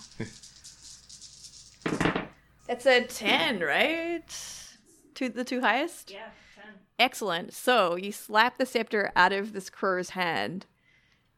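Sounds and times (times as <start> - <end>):
dice being rolled: 0.0 - 2.3
speech: 0.2 - 0.4, 2.7 - 4.6, 5.2 - 10.7.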